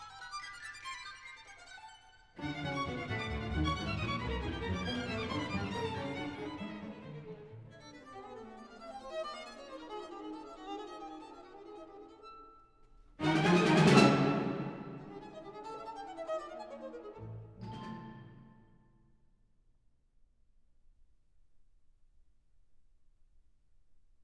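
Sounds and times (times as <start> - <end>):
strings: 0.0 - 12.3, 13.2 - 18.8
violin: 0.0 - 12.6, 13.2 - 18.7.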